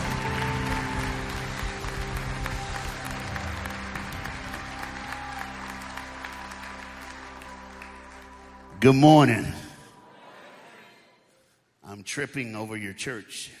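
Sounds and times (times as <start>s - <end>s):
church congregation applause welcoming a guest speaker: 0.0s - 10.8s
speech: 8.8s - 9.6s, 12.0s - 13.5s.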